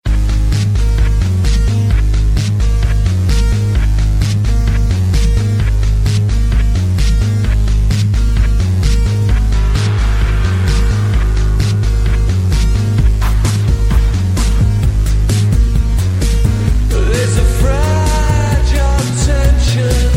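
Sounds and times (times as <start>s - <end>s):
tense fragile music: 0.1s - 20.1s.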